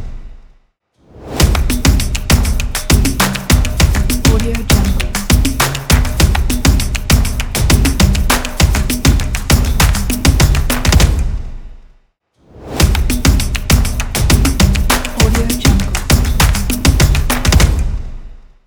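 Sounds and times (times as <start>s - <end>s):
ethnic stomp percussion: 0.0s - 0.6s, 1.2s - 12.0s, 12.6s - 18.6s.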